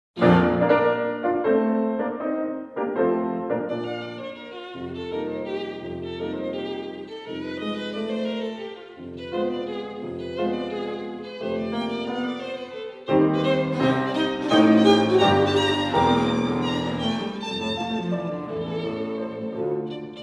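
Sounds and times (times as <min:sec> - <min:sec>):
piano trio: 0:00.2 - 0:20.2.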